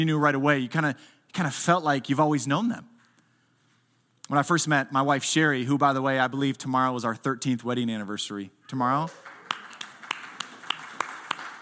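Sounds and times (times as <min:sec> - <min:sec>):
speech: 0:00.0 - 0:02.9, 0:04.3 - 0:09.3
hiss: 0:00.0 - 0:11.6
sparse audience applause: 0:09.1 - 0:11.6.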